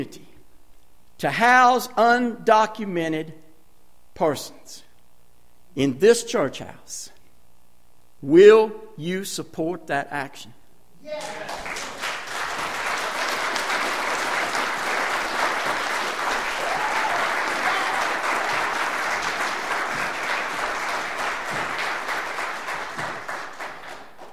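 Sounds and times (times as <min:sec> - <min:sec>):
speech: 0:00.0 - 0:00.2, 0:01.2 - 0:03.4, 0:04.2 - 0:04.8, 0:05.8 - 0:07.2, 0:08.2 - 0:11.6
audience applauding in a church: 0:11.1 - 0:24.3.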